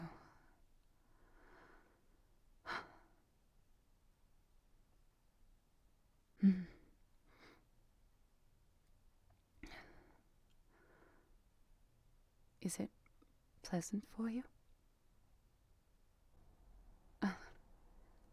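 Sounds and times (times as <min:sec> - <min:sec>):
close breathing: 0:00.1 - 0:02.2, 0:09.7 - 0:11.4
speech: 0:12.6 - 0:13.0, 0:13.6 - 0:14.6.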